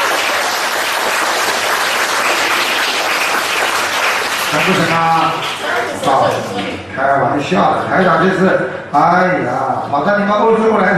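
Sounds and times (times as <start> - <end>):
audience applause: 0.0 - 6.7
speech: 4.7 - 10.9.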